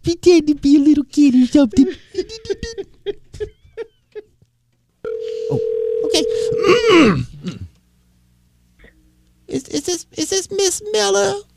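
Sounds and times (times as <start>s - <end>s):
speech: 0.1s - 2.8s, 7.0s - 7.3s, 10.7s - 11.5s
laughter: 1.8s - 4.4s
telephone dial tone: 5.0s - 6.8s
telephone keypad tones dialing a number: 5.1s - 6.7s.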